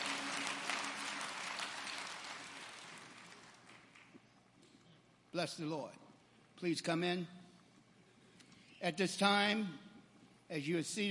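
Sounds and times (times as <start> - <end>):
audience hand clapping: 0.0 - 4.4
speech: 5.4 - 6.0, 6.6 - 7.4, 8.8 - 9.8, 10.5 - 11.0.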